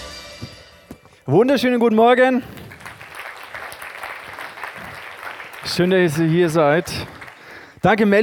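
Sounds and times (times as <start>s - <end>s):
speech: 1.3s - 2.6s, 5.8s - 7.2s, 7.8s - 8.2s
audience applause: 2.6s - 7.6s.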